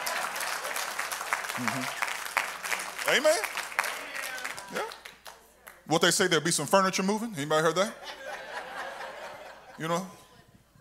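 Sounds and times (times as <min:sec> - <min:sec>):
audience clapping: 0:00.0 - 0:05.9
speech: 0:01.6 - 0:02.0, 0:03.0 - 0:03.6, 0:04.7 - 0:05.0, 0:05.9 - 0:08.2, 0:09.8 - 0:10.2
laughter: 0:07.9 - 0:10.3.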